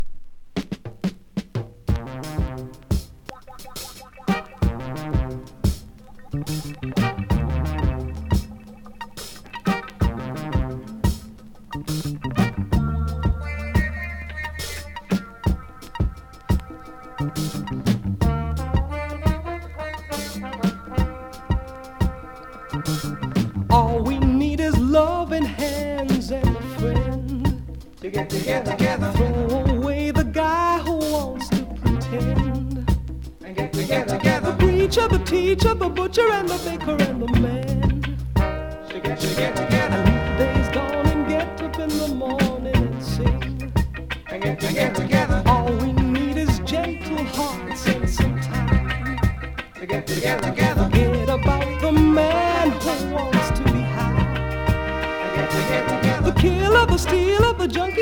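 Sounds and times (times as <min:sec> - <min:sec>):
Jamaica funk soul breakbeat: 0:00.6 - 0:58.0.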